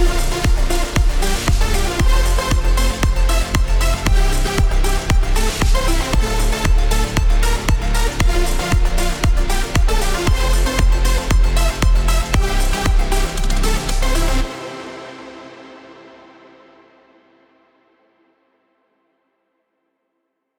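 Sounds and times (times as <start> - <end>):
techno music: 0.0 - 14.6.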